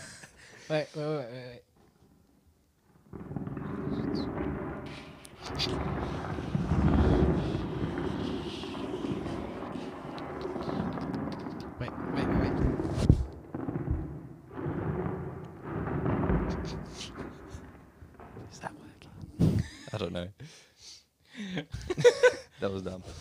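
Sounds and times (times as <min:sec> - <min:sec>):
speech: 0:00.7 - 0:01.7, 0:05.6 - 0:06.3, 0:20.0 - 0:20.7, 0:21.4 - 0:23.1
microphone being rubbed and scraped to imitate rain: 0:03.1 - 0:19.7
laughter: 0:19.5 - 0:20.1, 0:21.4 - 0:22.6.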